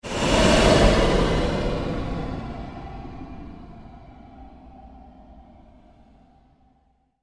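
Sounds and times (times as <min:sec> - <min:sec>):
long surge sweep: 0:00.0 - 0:05.8.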